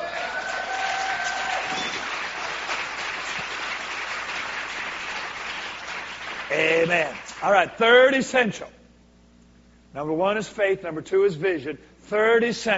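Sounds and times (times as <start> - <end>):
audience hand clapping: 0.0 - 7.6
speech: 6.5 - 8.8, 10.0 - 12.7.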